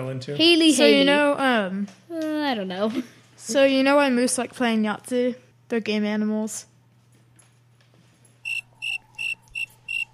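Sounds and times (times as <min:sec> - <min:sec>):
speech: 0:00.0 - 0:06.7
crickets: 0:08.4 - 0:10.1.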